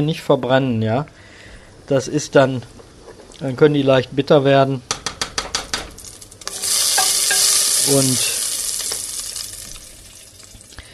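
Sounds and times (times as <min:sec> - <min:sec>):
speech: 0:00.0 - 0:01.2, 0:01.9 - 0:02.8, 0:03.4 - 0:04.9, 0:07.9 - 0:08.4
hot oil sizzling as seasoned pieces are seared in a pan: 0:06.0 - 0:10.9.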